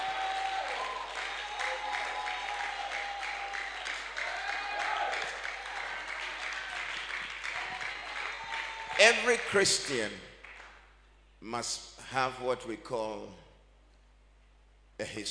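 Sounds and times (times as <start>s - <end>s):
audience clapping and shouting: 0.0s - 9.8s
speech: 9.0s - 10.3s, 11.4s - 13.4s, 15.0s - 15.3s.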